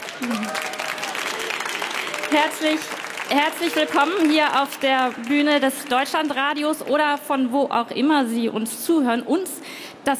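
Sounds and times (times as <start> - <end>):
audience applause at Frankfurt book fair: 0.0 - 6.5
speech: 0.2 - 0.8, 2.3 - 10.1.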